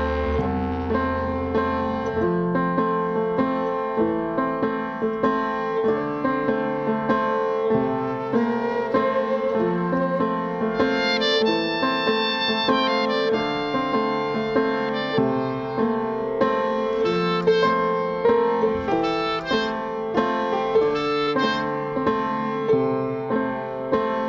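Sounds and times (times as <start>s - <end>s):
clarinet in a film score: 0.0s - 24.2s
flute in a film score: 5.4s - 24.2s.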